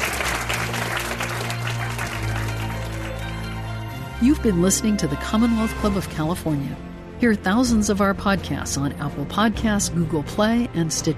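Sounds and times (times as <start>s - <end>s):
audience applause: 0.0s - 3.8s
speech: 4.2s - 11.1s.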